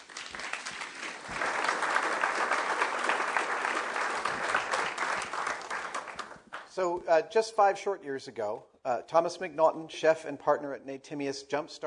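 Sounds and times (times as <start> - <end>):
audience applause welcoming a chef and a moderator at an evening program: 0.0 - 6.7
speech: 6.8 - 11.8.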